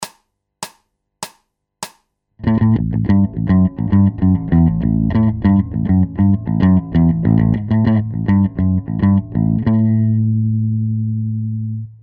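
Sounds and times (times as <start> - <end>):
bass loops: 2.4 - 12.0.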